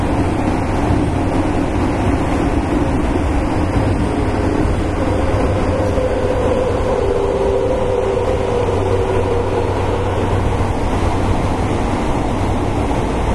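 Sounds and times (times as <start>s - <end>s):
Fukuoka City Subway 1000 series train running rumble: 0.0s - 13.3s
low hum: 2.4s - 12.8s
faint whining tone: 3.9s - 11.4s.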